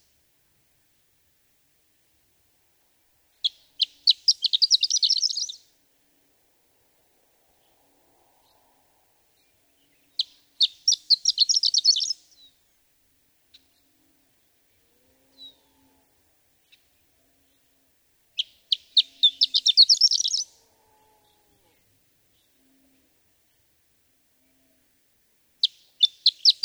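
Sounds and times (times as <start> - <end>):
horned lark singing: 3.4 - 5.6, 9.4 - 12.5, 18.4 - 20.6, 25.6 - 26.6.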